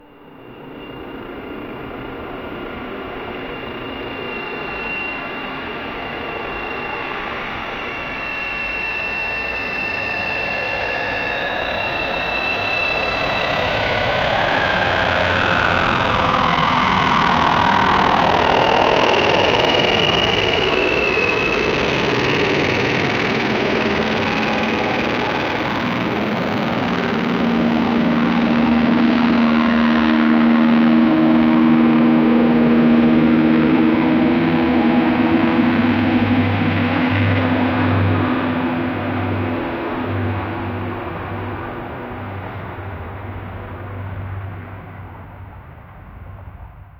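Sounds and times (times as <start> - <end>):
helicopter: 0.0 - 46.9.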